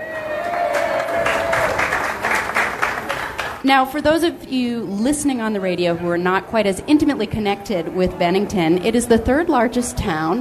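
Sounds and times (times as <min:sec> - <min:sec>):
lunchtime crowd applauding in a brewpub: 0:00.0 - 0:03.6
speech: 0:03.6 - 0:10.4.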